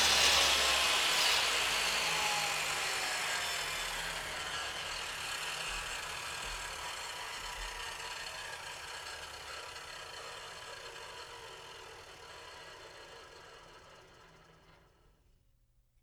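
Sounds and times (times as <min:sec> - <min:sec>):
table saw: 0:00.0 - 0:15.0.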